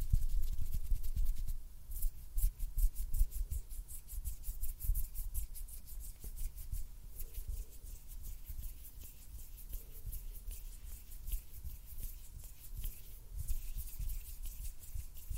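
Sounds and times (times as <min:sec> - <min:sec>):
finger fluttering and hand sounds: 0:00.0 - 0:15.3.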